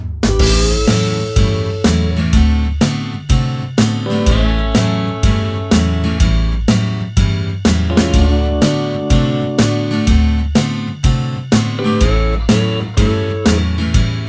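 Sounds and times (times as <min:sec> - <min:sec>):
country backing track: 0:00.2 - 0:14.2.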